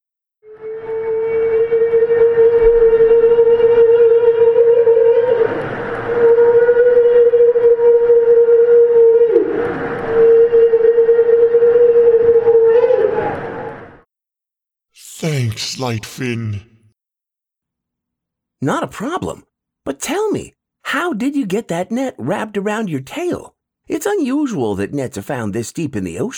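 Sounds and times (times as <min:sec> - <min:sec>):
happy whale cry: 0:00.4 - 0:14.0
speech: 0:15.8 - 0:16.7, 0:18.6 - 0:26.3.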